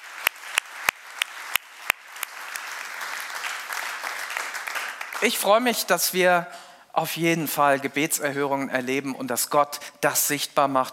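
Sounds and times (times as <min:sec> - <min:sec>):
audience applause: 0:00.0 - 0:05.4
speech: 0:05.2 - 0:10.9.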